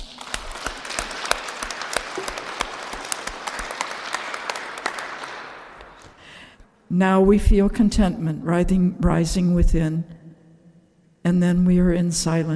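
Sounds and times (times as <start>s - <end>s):
audience clapping hands: 0.0s - 6.5s
speech: 6.9s - 10.2s, 11.2s - 12.5s.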